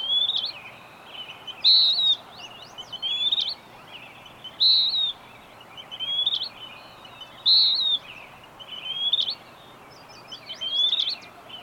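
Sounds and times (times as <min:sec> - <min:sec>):
bird whistling song: 0:00.0 - 0:11.6
soft hiss: 0:00.0 - 0:11.6.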